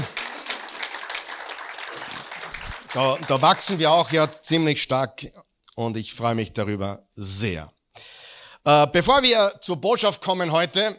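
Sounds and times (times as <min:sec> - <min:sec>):
audience applause: 0:00.0 - 0:04.4
speech: 0:02.9 - 0:10.9.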